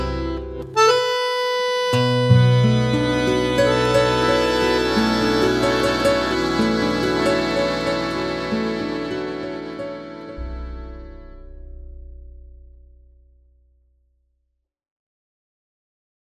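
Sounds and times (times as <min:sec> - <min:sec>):
tango music: 0:00.0 - 0:11.4.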